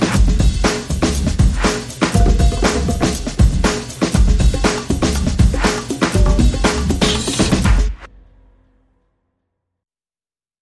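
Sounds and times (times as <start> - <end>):
drums and percussion: 0.0 - 8.1.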